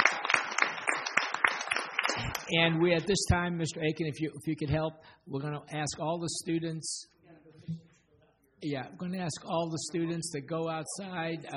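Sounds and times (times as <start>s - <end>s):
light scattered clapping for students and teachers at a school gathering: 0.0s - 2.5s
speech: 2.5s - 7.8s, 8.6s - 11.5s.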